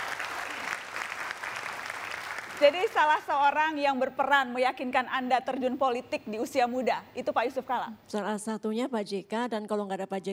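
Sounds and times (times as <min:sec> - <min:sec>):
audience applause: 0:00.0 - 0:03.0
speech: 0:02.6 - 0:10.3.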